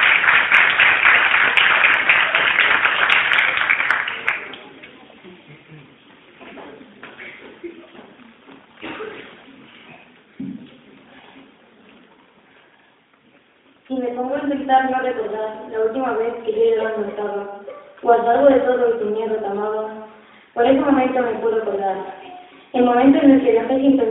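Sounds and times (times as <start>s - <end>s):
audience applause: 0.0s - 4.8s
speech: 14.7s - 17.5s, 18.1s - 20.0s, 20.6s - 24.0s.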